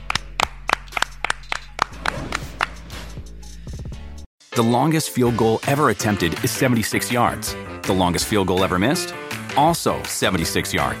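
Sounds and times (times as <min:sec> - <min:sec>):
hands clapping: 0:00.0 - 0:02.8
speech: 0:04.6 - 0:10.9.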